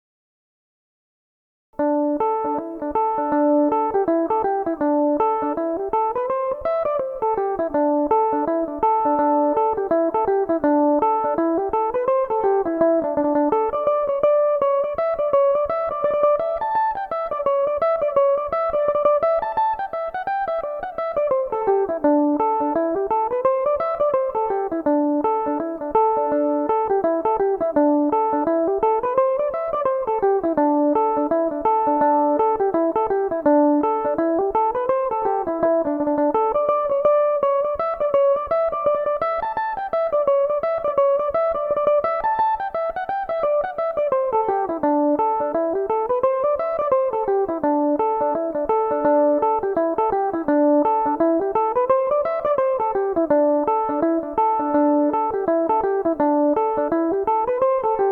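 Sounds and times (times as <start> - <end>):
Irish mandolin tunes in D mixolydian: 1.8 - 58.1.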